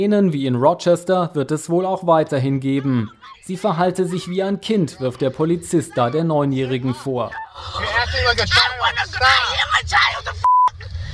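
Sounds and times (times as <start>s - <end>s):
speech: 0.0s - 10.6s
laughter: 1.8s - 10.4s
censor bleep over an insult in a US police video: 10.4s - 10.7s.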